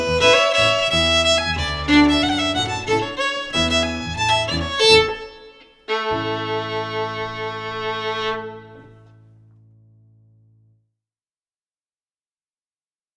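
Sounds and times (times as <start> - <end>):
fiddle playing a Highland fling: 0.0 - 9.2
piano: 0.0 - 10.8.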